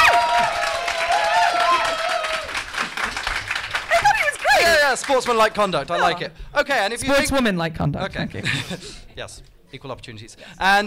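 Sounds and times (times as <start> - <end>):
audience applause: 0.0 - 5.8
speech: 5.1 - 10.8.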